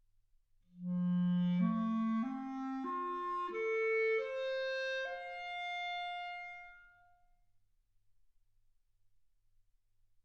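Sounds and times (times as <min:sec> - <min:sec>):
clarinet: 0:00.8 - 0:07.2.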